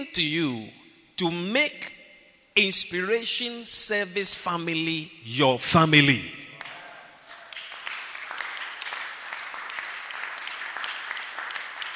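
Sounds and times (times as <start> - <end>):
speech: 0.0 - 1.9, 2.6 - 6.4
audience clapping: 6.6 - 11.9.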